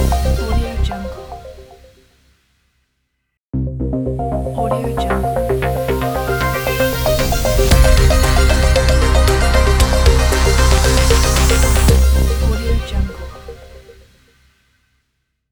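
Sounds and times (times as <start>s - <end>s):
hi-tech futuristic intro logo: 3.6s - 14.1s.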